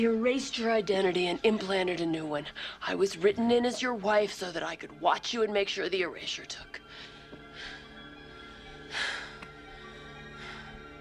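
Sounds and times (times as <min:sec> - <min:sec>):
speech: 0:00.0 - 0:07.8
heavy breathing: 0:06.8 - 0:10.9.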